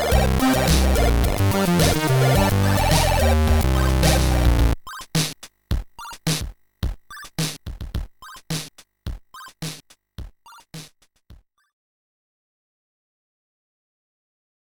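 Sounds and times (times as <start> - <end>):
song: 0.0 - 5.0.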